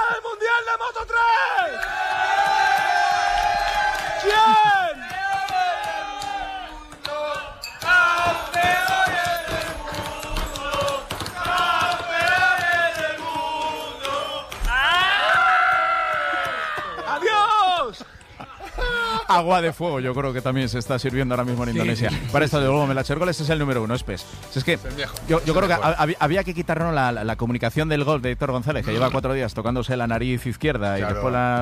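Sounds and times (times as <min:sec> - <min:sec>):
CF Moto Aspar team party crowd celebrating a title: 0:00.0 - 0:19.5
laughter: 0:16.3 - 0:20.1, 0:21.7 - 0:22.8
speech: 0:19.3 - 0:31.6.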